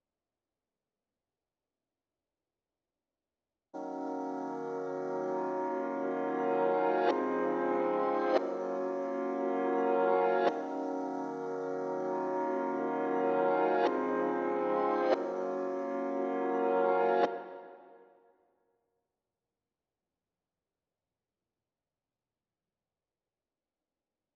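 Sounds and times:
reversed RnB piano melody in A-sharp minor at 142 BPM: 3.8 - 17.6.

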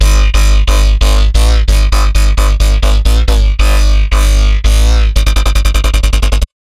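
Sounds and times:
dubstep bassline in C3 at 140 bpm: 0.0 - 6.6.

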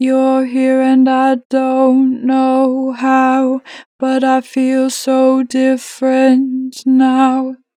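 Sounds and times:
vocals with natural vibrato: 0.0 - 7.7.

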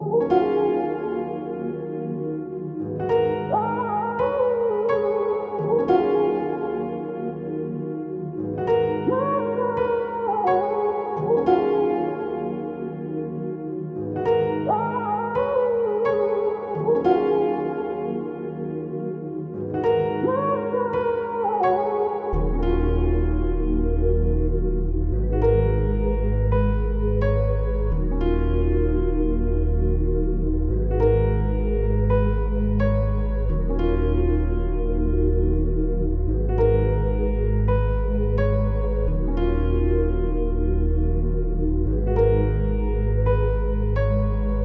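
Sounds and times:
86 BPM music in D sharp minor: 0.0 - 44.6.

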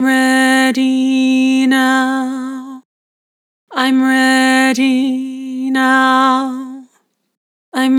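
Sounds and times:
person singing with vibrato: 0.0 - 2.8, 3.7 - 7.0.

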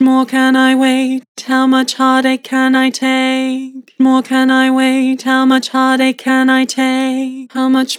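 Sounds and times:
person singing with vibrato: 0.0 - 7.9.

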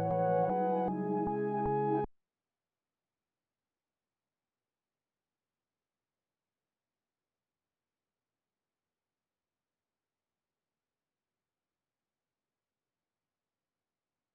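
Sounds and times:
reversed keys melody loop in C sharp minor: 0.0 - 2.1.

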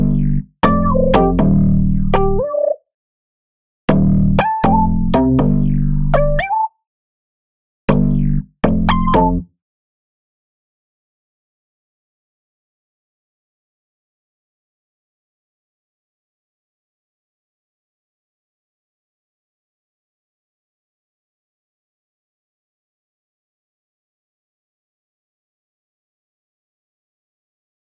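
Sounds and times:
bass in G minor: 0.0 - 2.8, 3.9 - 6.7, 7.9 - 9.5.

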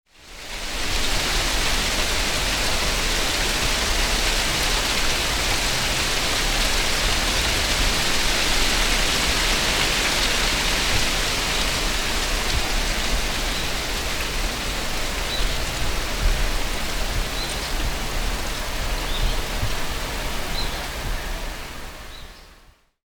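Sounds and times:
nature ambience: 1.1 - 22.8.

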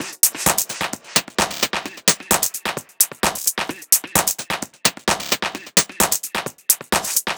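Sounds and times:
techno percussion loop: 0.0 - 7.3.

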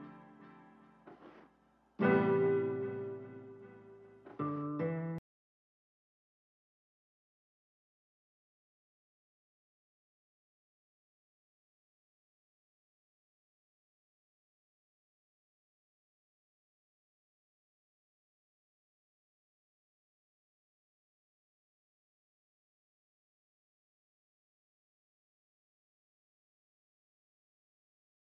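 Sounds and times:
guitar loop in A minor at 150 BPM: 2.0 - 5.2.

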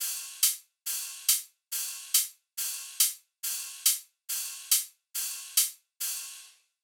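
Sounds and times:
riddim drum loop at 140 bpm: 0.0 - 6.5.

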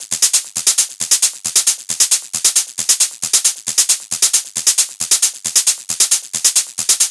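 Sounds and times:
techno hi-hat loop at 135 BPM: 0.0 - 7.0.

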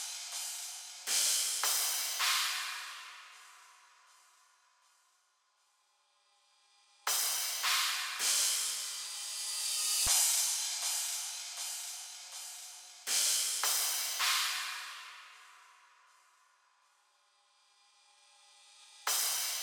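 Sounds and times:
drums: 0.0 - 4.9, 7.1 - 16.4, 18.8 - 19.6.

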